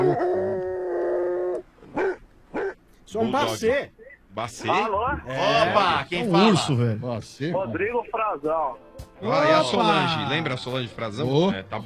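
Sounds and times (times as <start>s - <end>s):
speech: 0.0s - 0.4s, 3.1s - 11.8s
dog from a kennel howling: 0.0s - 2.8s.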